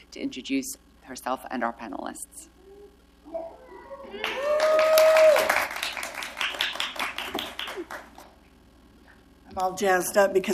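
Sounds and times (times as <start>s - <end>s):
speech: 0.1s - 2.6s, 3.3s - 5.0s, 7.8s - 8.2s, 9.5s - 10.5s
sustained whoop: 2.6s - 5.7s
audience applause: 4.1s - 8.4s.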